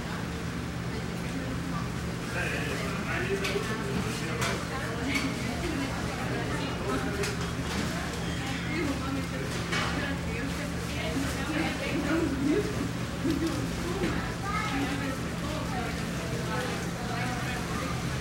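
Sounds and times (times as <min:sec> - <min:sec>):
crowd in an active fast food restaurant in Costa Rica: 0:00.0 - 0:18.1.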